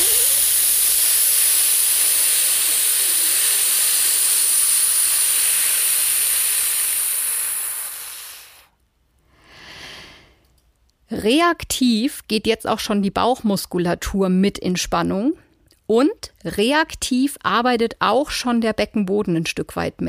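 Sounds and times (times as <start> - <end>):
whistling exhale through gap in teeth: 0.0 - 8.8, 9.4 - 10.4
speech: 11.1 - 20.0.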